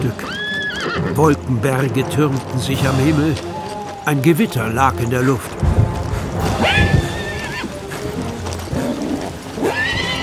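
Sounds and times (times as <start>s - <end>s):
speech: 0.0s - 0.3s, 1.0s - 5.7s
horse whinnying: 0.0s - 1.2s, 6.4s - 8.0s, 8.7s - 10.2s
hooves thudding: 0.0s - 10.2s.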